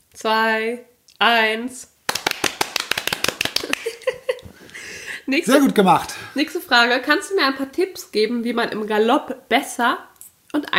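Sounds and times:
speech: 0:00.2 - 0:01.9, 0:05.3 - 0:10.7
hand clapping: 0:02.1 - 0:04.5
laughter: 0:03.4 - 0:06.0.

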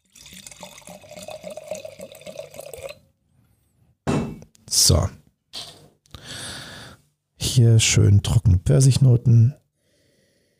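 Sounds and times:
wine glugging into a glass: 0:00.0 - 0:03.0
speech: 0:04.8 - 0:05.2, 0:07.6 - 0:09.6.

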